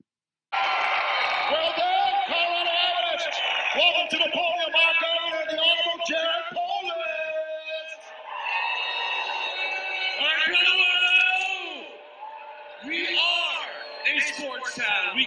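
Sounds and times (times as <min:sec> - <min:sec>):
crowd booing: 0:00.5 - 0:15.2.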